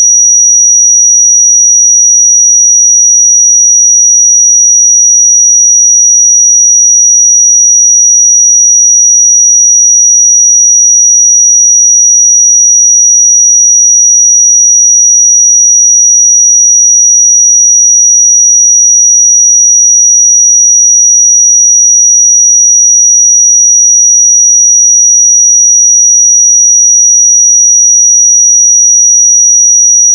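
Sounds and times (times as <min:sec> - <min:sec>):
pure sine tone at 5793 Hz: 0:00.0 - 0:30.1.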